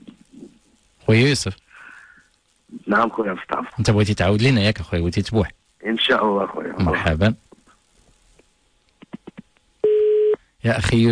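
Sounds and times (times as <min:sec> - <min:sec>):
speech: 0:01.1 - 0:01.6, 0:02.9 - 0:07.4, 0:10.6 - 0:11.1
telephone busy tone after a dropped phone-in call: 0:09.8 - 0:10.4.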